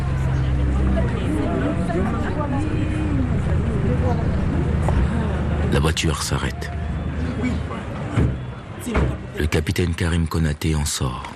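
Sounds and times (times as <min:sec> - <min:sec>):
impatient crowd murmuring: 0:00.0 - 0:10.1
speech: 0:05.8 - 0:06.8, 0:07.4 - 0:11.3
impatient crowd whistling: 0:06.4 - 0:08.8.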